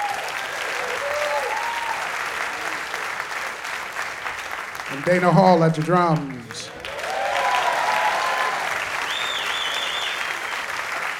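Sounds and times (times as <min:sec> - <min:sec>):
faint whoops: 0:00.0 - 0:02.2, 0:06.9 - 0:10.4
audience applause: 0:00.0 - 0:11.1
speech: 0:04.9 - 0:06.8.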